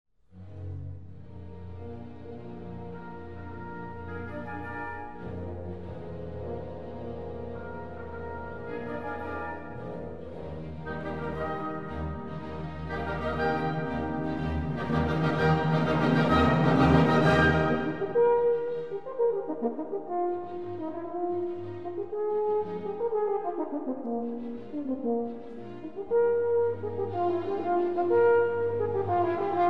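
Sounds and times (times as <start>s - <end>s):
horn concerto allegro: 1.2s - 29.6s.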